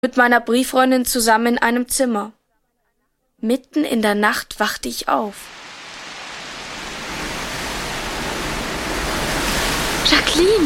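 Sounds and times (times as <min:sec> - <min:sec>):
speech: 0:00.0 - 0:02.4, 0:03.4 - 0:05.6, 0:10.3 - 0:10.6
storm wind howling: 0:05.3 - 0:10.6.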